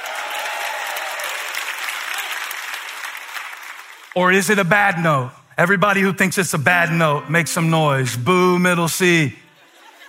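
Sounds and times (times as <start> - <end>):
church congregation applauding and cheering: 0.0 - 5.0
speech: 4.2 - 9.4
laughter: 9.4 - 10.0.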